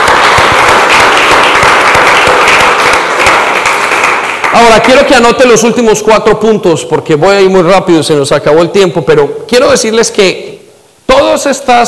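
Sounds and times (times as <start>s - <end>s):
audience applause: 0.0s - 5.2s
speech: 4.6s - 10.5s, 11.1s - 11.8s.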